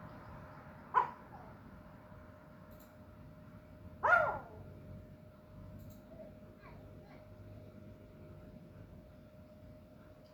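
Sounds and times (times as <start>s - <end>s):
dog barking: 0.9s - 1.2s, 4.0s - 4.6s.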